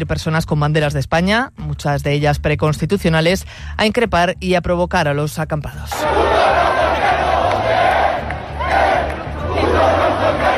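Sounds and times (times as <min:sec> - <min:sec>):
speech: 0:00.0 - 0:06.6
protest crowd shouting chants: 0:06.0 - 0:10.5.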